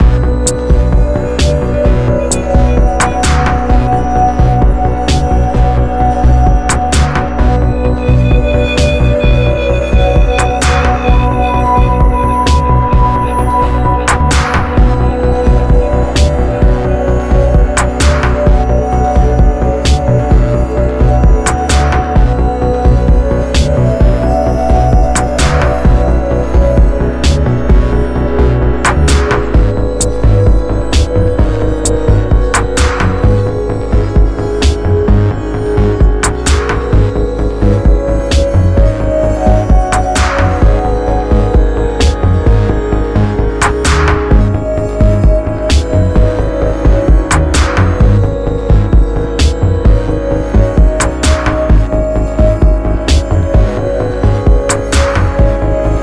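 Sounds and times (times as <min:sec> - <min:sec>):
tense music: 0:00.0 - 0:56.0.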